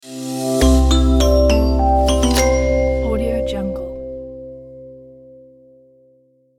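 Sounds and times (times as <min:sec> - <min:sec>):
marimba logo jingle: 0:00.6 - 0:04.4.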